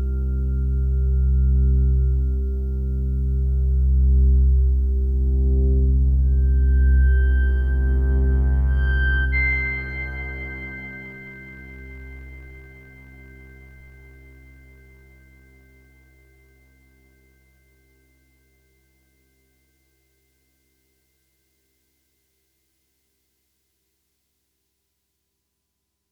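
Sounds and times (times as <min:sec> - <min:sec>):
synth bass: 0:00.0 - 0:15.1.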